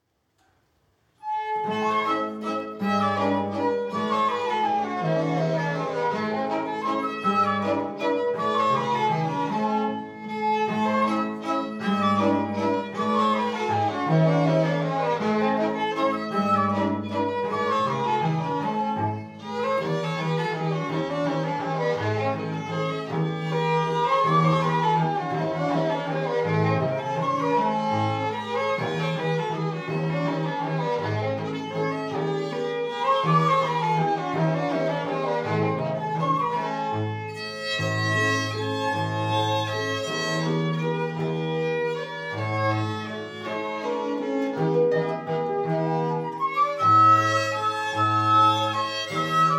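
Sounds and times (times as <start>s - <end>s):
waltz music: 1.2s - 49.5s.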